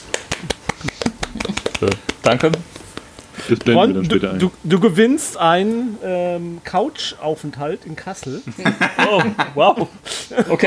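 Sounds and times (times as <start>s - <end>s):
hands clapping: 0.0s - 3.7s
laughter: 0.8s - 2.6s, 8.5s - 10.6s
speech: 1.8s - 2.7s, 3.5s - 10.6s.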